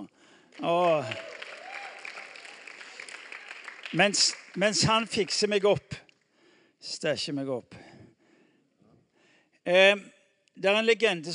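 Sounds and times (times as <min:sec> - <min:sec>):
speech: 0:00.0 - 0:01.3, 0:03.9 - 0:06.0, 0:06.8 - 0:07.8, 0:09.7 - 0:11.3
audience applause: 0:00.6 - 0:05.5.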